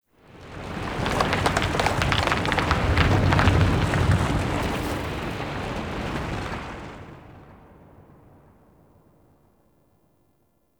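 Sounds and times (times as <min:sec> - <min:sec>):
earthquake rumble: 0:00.3 - 0:08.6.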